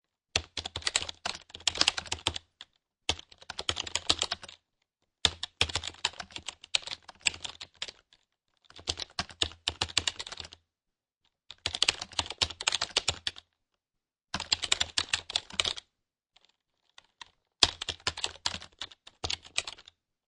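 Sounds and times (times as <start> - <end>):
computer keyboard typing: 0.4 - 4.6, 5.2 - 8.1, 8.7 - 10.6, 11.5 - 13.4, 14.4 - 15.9, 17.0 - 20.0.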